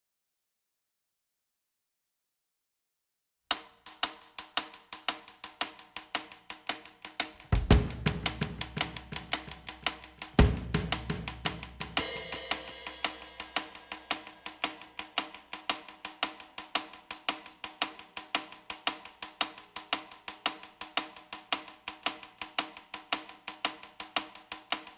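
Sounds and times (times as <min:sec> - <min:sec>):
drums: 0:03.5 - 0:24.9.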